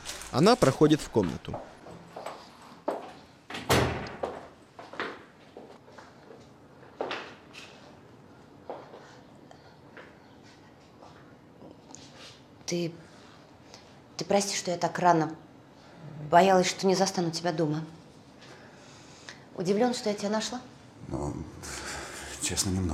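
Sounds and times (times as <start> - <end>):
speech: 0.3 - 1.7, 12.7 - 13.1, 14.3 - 15.5, 16.3 - 18.0, 19.6 - 21.3, 22.5 - 22.9
door being opened: 3.5 - 4.4.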